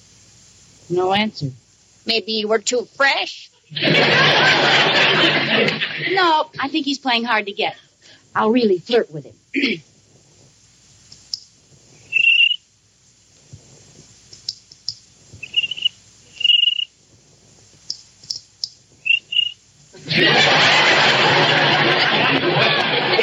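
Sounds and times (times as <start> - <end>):
speech: 0.9 - 9.9
laughter: 3.7 - 6.4, 20.0 - 23.2
soft tapping clicks: 11.1 - 11.5, 14.0 - 15.1, 17.8 - 18.8
cricket chirping in rhythm: 11.3 - 11.5, 12.1 - 12.7, 14.3 - 17.0, 17.8 - 19.7.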